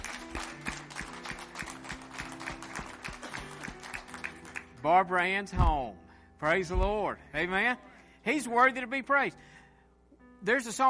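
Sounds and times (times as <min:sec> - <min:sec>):
audience hand clapping in praise: 0:00.0 - 0:04.8
speech: 0:04.8 - 0:09.5, 0:10.4 - 0:10.8.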